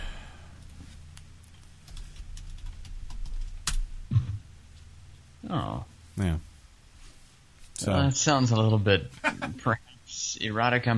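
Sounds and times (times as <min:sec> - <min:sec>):
typing on a computer keyboard: 0:01.4 - 0:03.8
speech: 0:05.5 - 0:06.5, 0:07.8 - 0:10.9.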